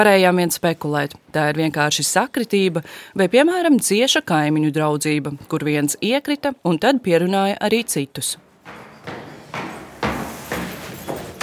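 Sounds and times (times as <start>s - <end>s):
speech: 0.0s - 9.2s
knocking on a door: 8.6s - 11.4s.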